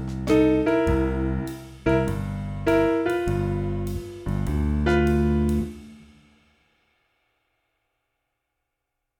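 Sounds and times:
blues music: 0:00.0 - 0:06.0.

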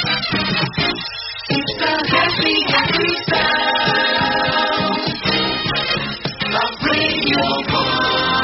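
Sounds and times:
radio jingle: 0:00.1 - 0:08.3.

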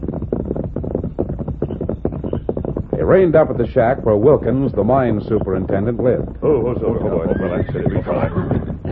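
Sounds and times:
dense continuous background: 0:00.0 - 0:08.8
speech: 0:03.1 - 0:08.8
horse whinnying outside a shack at night: 0:06.8 - 0:08.8.

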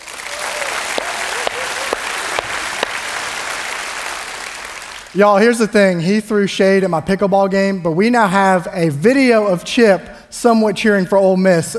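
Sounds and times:
audience applause: 0:00.0 - 0:05.2
speech: 0:05.2 - 0:11.7.

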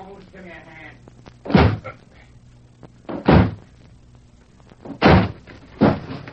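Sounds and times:
speech: 0:00.4 - 0:01.1
door being smashed open: 0:01.5 - 0:01.9, 0:03.1 - 0:03.6, 0:04.8 - 0:06.3.

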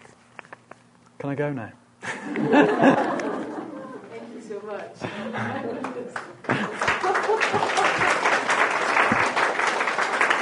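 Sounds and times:
speech: 0:01.2 - 0:03.2, 0:04.5 - 0:08.1
laughter: 0:02.0 - 0:04.3, 0:05.0 - 0:09.5
audience applause: 0:05.8 - 0:10.3.

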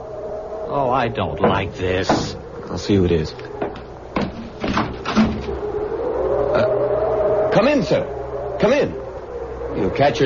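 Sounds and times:
steady low hum: 0:00.0 - 0:10.2
speech: 0:00.7 - 0:03.8, 0:07.6 - 0:09.0, 0:09.8 - 0:10.2
knocking on wooden door: 0:01.4 - 0:02.4.

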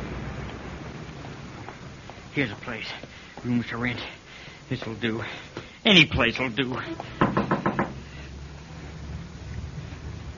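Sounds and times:
low quiet hum: 0:00.0 - 0:10.3
speech: 0:02.4 - 0:07.3
knocking on a door: 0:07.2 - 0:08.0.

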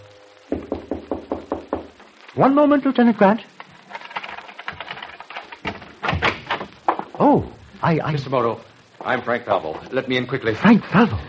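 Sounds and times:
knocking on a door: 0:00.5 - 0:02.0
speech: 0:02.4 - 0:03.5, 0:07.3 - 0:11.2.

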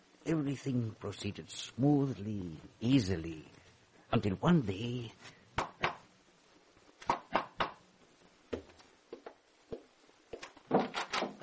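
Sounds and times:
speech: 0:00.2 - 0:05.7
door being opened with knocks, clunks and rattles: 0:10.6 - 0:11.4.

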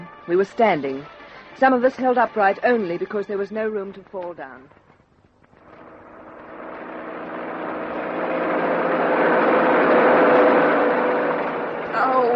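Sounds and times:
speech: 0:00.3 - 0:04.8
open truck engine driving fast over rough roads: 0:05.6 - 0:12.3.

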